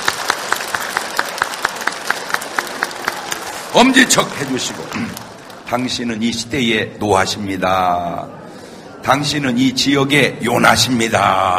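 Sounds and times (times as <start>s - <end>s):
church congregation rhythmic clapping: 0.0s - 5.8s
speech: 3.7s - 8.4s, 9.0s - 11.5s.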